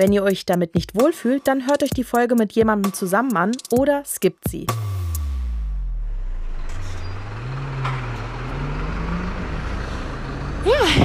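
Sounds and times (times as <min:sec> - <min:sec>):
speech: 0:00.0 - 0:05.0, 0:10.6 - 0:11.0
heavy vehicle engine rumble: 0:05.9 - 0:11.0
street traffic in a city station district: 0:05.9 - 0:11.0.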